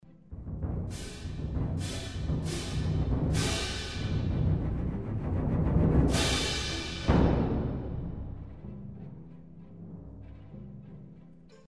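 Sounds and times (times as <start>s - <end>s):
bass drum: 0.4s - 8.7s
cymbals: 0.6s - 4.8s, 6.0s - 8.6s.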